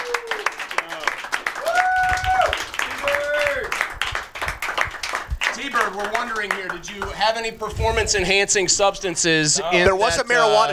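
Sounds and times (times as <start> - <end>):
whoops and shouted cheers: 0.0 - 0.6, 1.4 - 3.8
crowd applause for the winner: 0.0 - 7.7
speech: 6.0 - 10.7.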